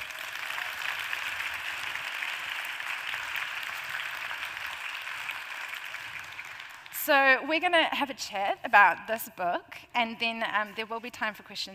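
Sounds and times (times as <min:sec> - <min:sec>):
audience applause: 0:00.0 - 0:07.0
speech: 0:07.1 - 0:11.7.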